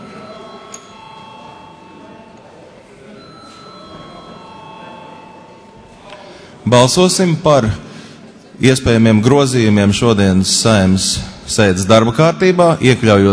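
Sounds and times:
parliament electric voting bell ringing: 0.0s - 6.0s
speech: 6.7s - 7.8s, 8.6s - 13.3s.

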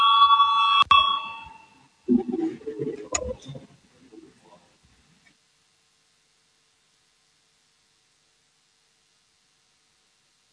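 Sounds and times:
parliament voting bell tone: 0.0s - 1.8s.

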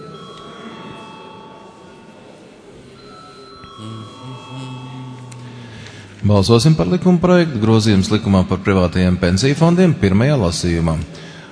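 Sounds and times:
parliament chamber bell ringing before a vote: 0.0s - 2.0s, 3.0s - 6.1s
murmur of voices in the hall: 0.0s - 11.5s
speech: 3.8s - 5.0s, 6.2s - 11.3s.

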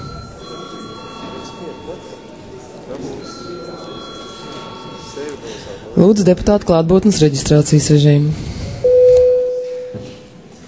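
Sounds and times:
session bell with high electronic tone: 0.0s - 5.6s, 8.8s - 10.4s
low murmur of people talking: 0.0s - 10.6s
speech: 1.9s - 2.2s, 2.9s - 8.5s.

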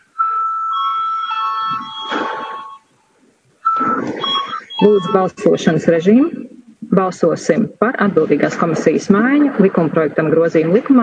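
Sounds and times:
parliamentary session bell ringing with electric buzz: 0.2s - 5.2s
speech: 4.8s - 6.4s, 7.0s - 11.0s.

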